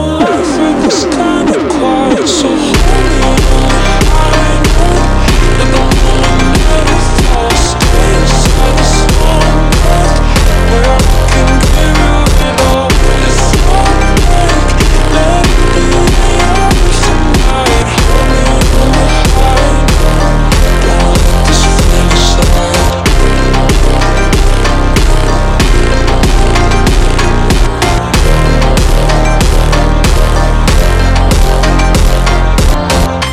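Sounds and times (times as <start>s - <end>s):
ultra slowed jumpstyle high note: 0.2s - 33.1s.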